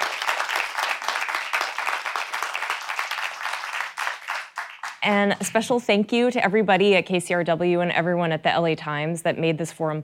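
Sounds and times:
crowd applauding: 0.0s - 5.0s
speech: 5.0s - 10.0s.

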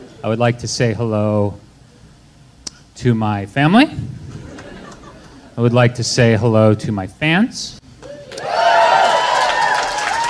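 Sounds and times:
speech: 0.2s - 1.6s, 3.0s - 4.2s, 5.6s - 7.8s
laughter: 4.3s - 5.6s
audience clapping: 8.0s - 10.2s
cheering voices: 8.0s - 10.2s.

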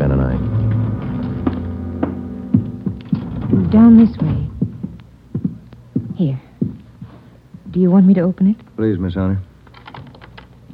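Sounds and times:
elevator hum going up: 0.0s - 6.8s
speech: 3.7s - 4.5s, 7.8s - 9.5s.

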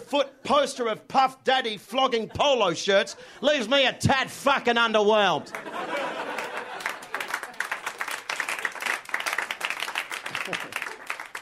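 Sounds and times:
speech: 0.1s - 6.3s
laughter: 2.0s - 3.7s, 5.4s - 8.2s, 10.1s - 11.3s
audience clapping: 5.4s - 11.4s.

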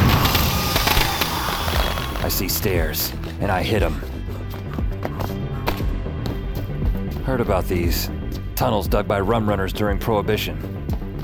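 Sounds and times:
firecrackers popping and crackling: 0.0s - 2.6s
dense noisy background: 0.0s - 11.2s
speech: 2.2s - 4.1s, 7.3s - 10.8s.

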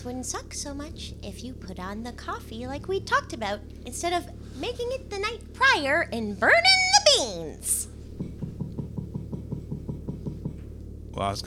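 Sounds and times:
speech: 0.0s - 7.9s, 11.2s - 11.4s
knocking on a closet door: 8.2s - 10.7s.

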